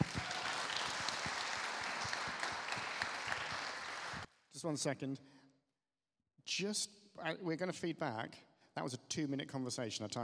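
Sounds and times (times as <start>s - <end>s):
round of applause from a group: 0.0s - 4.3s
speech: 4.6s - 5.4s, 6.5s - 10.2s.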